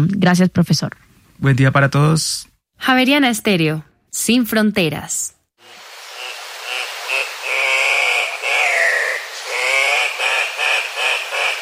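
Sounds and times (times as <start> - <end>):
speech: 0.0 - 5.8
Andean cock-of-the-rock calling with harsh, nasal squawks: 6.1 - 11.6.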